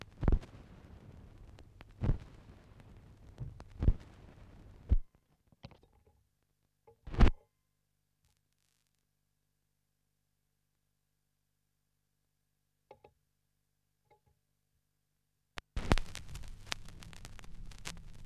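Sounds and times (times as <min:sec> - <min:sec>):
vinyl record noise: 0:00.0 - 0:05.0, 0:15.6 - 0:18.2.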